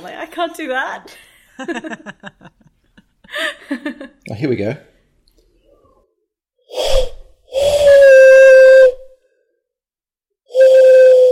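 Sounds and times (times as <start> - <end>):
speech: 0.0 - 2.5, 3.3 - 4.9
hollow breathy whistling blown through cupped hands: 6.7 - 9.2, 10.5 - 11.3.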